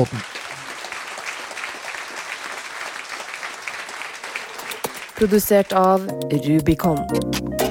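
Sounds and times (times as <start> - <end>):
speech: 0.0 - 0.3, 5.2 - 7.6
audience applause: 0.0 - 5.6.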